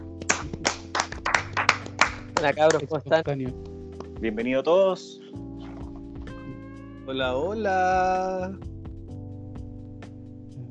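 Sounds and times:
audience claps: 0.0 - 2.9
speech: 2.4 - 5.4, 7.1 - 8.7.

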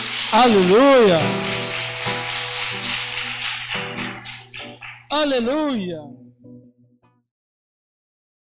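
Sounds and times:
audience applause: 0.0 - 5.7
speech: 0.3 - 1.5, 5.1 - 6.2.

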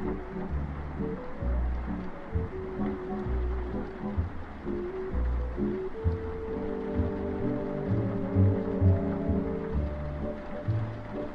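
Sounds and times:
oldies music playing in another room: 0.0 - 11.3
soft hiss: 0.0 - 11.3.

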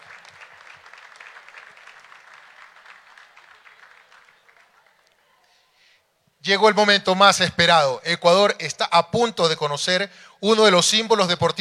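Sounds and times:
crowd applauding: 0.0 - 5.2
speech: 6.5 - 11.5.

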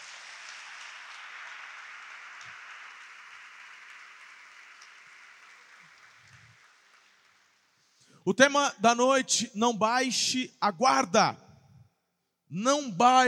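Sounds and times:
audience applauding: 0.0 - 7.6
speech: 8.2 - 11.4, 12.5 - 13.2.

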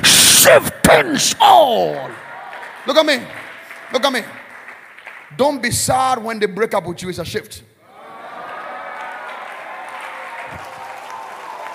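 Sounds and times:
speech: 0.4 - 4.4, 5.3 - 7.7
large audience clapping: 1.6 - 6.0, 8.0 - 11.7.

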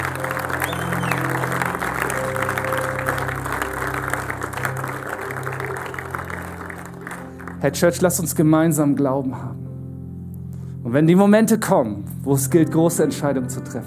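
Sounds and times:
crowd clapping: 0.0 - 8.3
speech: 7.6 - 9.6, 10.9 - 13.8.

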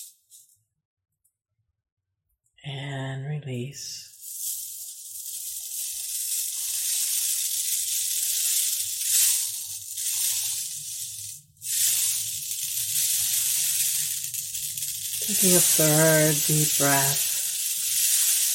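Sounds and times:
speech: 2.6 - 4.1, 15.4 - 17.3
rain stick mimicking gentle rainfall: 4.1 - 18.5.

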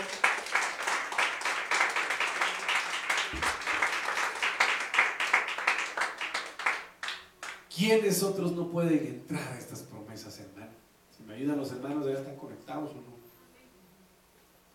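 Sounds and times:
audience clapping: 0.0 - 7.7
speech: 7.8 - 13.2.

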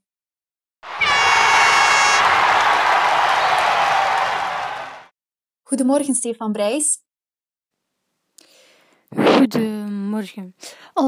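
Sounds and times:
applause: 0.8 - 5.1
speech: 5.7 - 7.1, 9.1 - 11.0.

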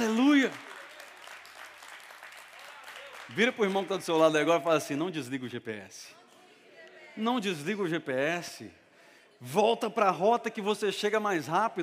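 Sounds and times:
applause: 0.0 - 4.9
speech: 3.4 - 6.2, 7.2 - 8.8, 9.4 - 11.8.

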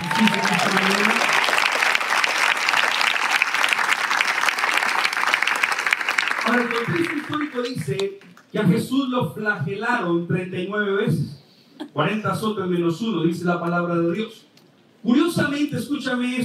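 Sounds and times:
audience applause: 0.0 - 8.4
speech: 7.9 - 16.4.

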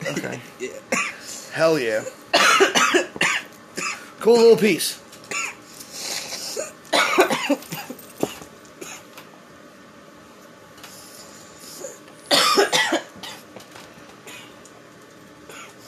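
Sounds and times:
person coughing: 0.0 - 1.3, 2.0 - 4.1, 5.3 - 9.1, 11.8 - 13.4
speech: 0.1 - 3.2, 4.2 - 5.0.

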